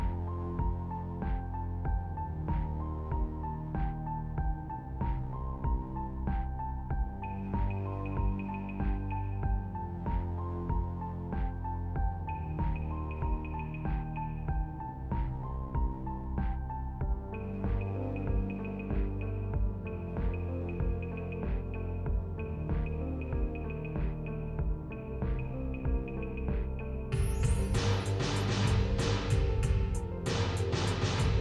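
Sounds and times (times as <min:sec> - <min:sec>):
ambient music: 0:00.0 - 0:31.3.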